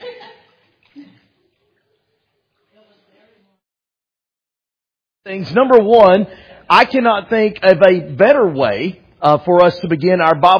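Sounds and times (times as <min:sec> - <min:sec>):
water splashing during immersion baptism: 0:00.0 - 0:03.2
speech: 0:05.2 - 0:10.5.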